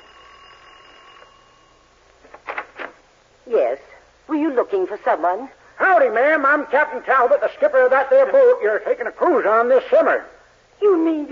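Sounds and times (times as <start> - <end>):
doorbell ringing: 0.0 - 2.1
speech: 3.5 - 3.8, 4.5 - 11.2.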